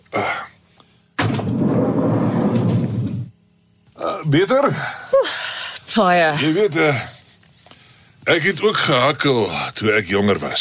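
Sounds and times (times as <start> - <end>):
loud rushing rumbling noise of a door being opened: 1.2 - 3.3
speech: 4.3 - 7.1, 8.3 - 10.6.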